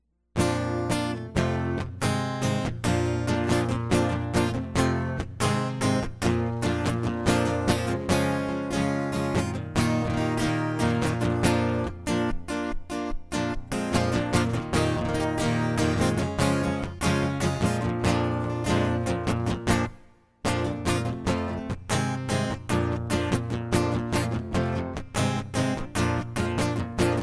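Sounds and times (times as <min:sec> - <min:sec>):
acoustic music: 0:00.4 - 0:27.2.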